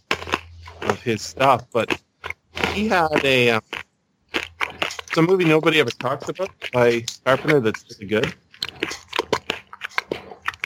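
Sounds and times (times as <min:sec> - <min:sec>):
crunching on a bite of nuts: 0:00.0 - 0:10.6
speech: 0:00.8 - 0:02.0, 0:02.8 - 0:03.8, 0:05.2 - 0:08.4.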